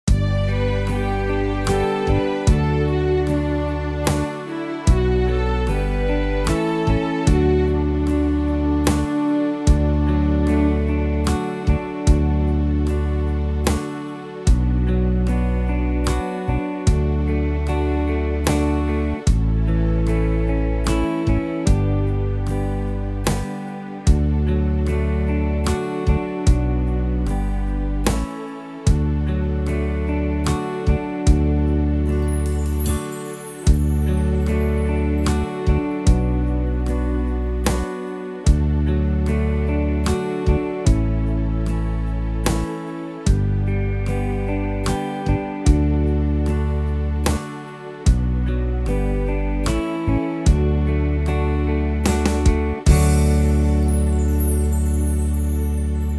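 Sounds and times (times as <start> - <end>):
backing music: 0.0 - 56.1.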